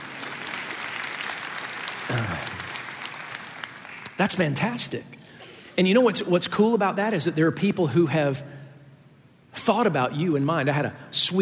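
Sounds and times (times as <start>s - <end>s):
audience applauding: 0.0s - 4.5s
speech: 4.2s - 5.2s, 5.8s - 8.6s, 9.6s - 11.3s.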